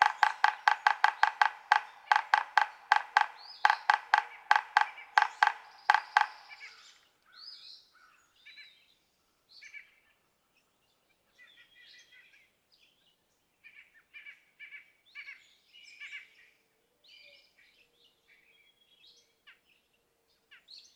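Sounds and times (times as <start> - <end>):
yellow-bellied sapsucker nasal mewing notes: 0.0 - 6.7.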